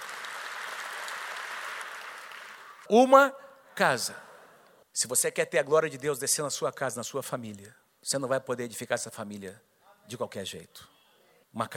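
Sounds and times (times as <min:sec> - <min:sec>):
audience applause: 0:00.0 - 0:02.9
speech: 0:02.9 - 0:04.3, 0:05.0 - 0:10.9, 0:11.5 - 0:11.7.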